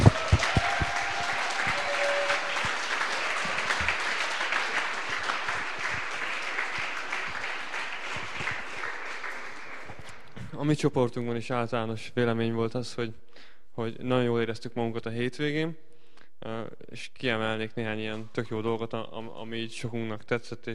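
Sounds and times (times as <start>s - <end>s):
applause: 0.0s - 10.5s
speech: 10.7s - 20.7s.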